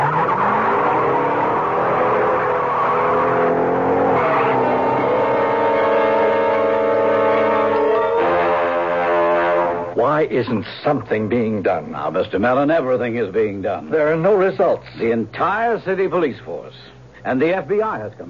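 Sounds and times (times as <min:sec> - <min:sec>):
getaway car engine revving and driving off: 0:00.0 - 0:10.0
tires squealing: 0:00.0 - 0:10.0
speech: 0:10.2 - 0:18.2.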